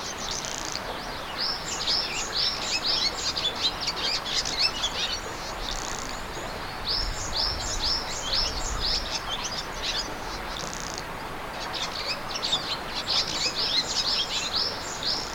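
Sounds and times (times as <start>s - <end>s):
birds singing in a busy chorus: 0.0s - 15.3s
steady background hiss: 0.0s - 15.3s.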